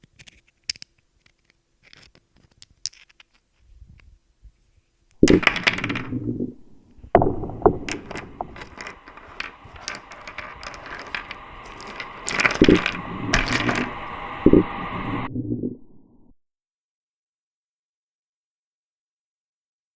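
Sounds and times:
eerie unsettling sound: 5.2 - 16.3.

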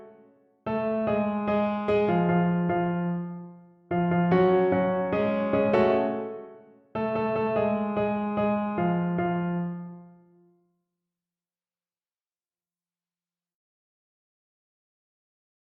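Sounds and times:
solo piano: 0.0 - 10.4.

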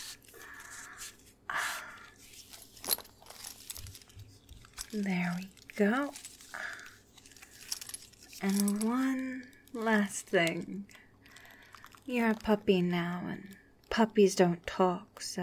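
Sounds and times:
rustling: 0.0 - 14.0
buckles being fastened on straps: 2.4 - 12.6
speech: 4.9 - 6.2, 8.4 - 11.0, 12.1 - 15.4.

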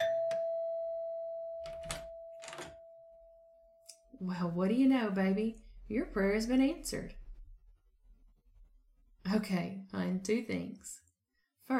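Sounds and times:
doorbell ringing at the front door: 0.0 - 3.9
speech: 4.2 - 7.2, 9.3 - 11.0.

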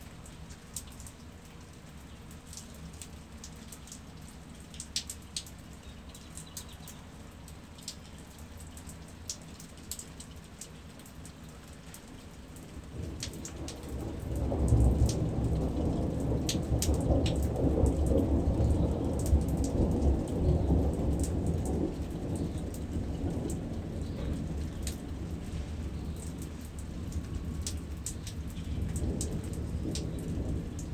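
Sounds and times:
thunderstorm: 12.9 - 30.9.

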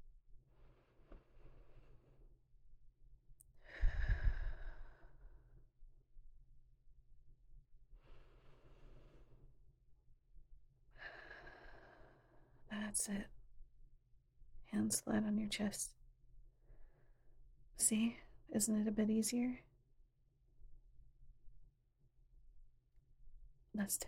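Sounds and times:
slow calming breathing: 0.5 - 2.5, 3.5 - 5.7, 7.9 - 9.6, 10.9 - 12.7, 16.6 - 17.4
speech: 13.0 - 13.4, 14.8 - 16.0, 17.9 - 19.7, 23.9 - 24.0.

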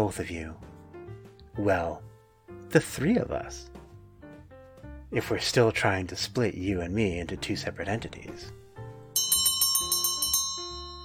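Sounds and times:
speech: 0.0 - 0.7, 1.6 - 2.1, 2.7 - 3.7, 5.1 - 8.6
bell ringing: 9.2 - 11.0.

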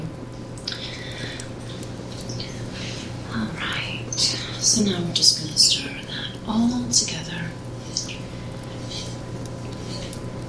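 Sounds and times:
squished tomatoes and sauce emptied out by hand: 0.0 - 6.6, 7.5 - 10.4
small drippy splats: 0.0 - 10.4
speech: 4.2 - 5.8, 6.5 - 7.6.

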